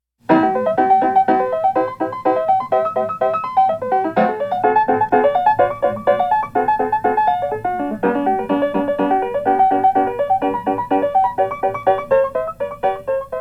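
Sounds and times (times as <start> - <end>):
piano sonata in C major allegro con brio: 0.2 - 13.3.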